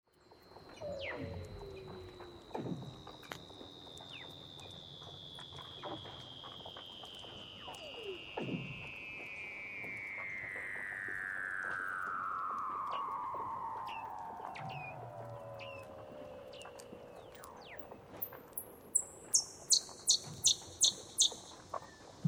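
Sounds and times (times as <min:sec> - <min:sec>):
Weddell seal whistled trill: 0:00.6 - 0:22.1.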